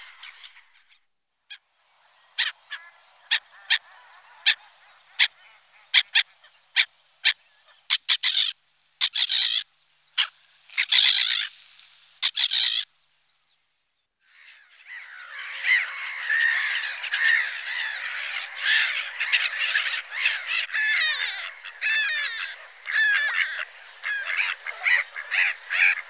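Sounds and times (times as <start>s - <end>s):
black-headed gull screeching and rasping calls: 2.4s - 9.6s, 10.2s - 11.5s, 12.2s - 12.8s, 14.4s - 26.0s.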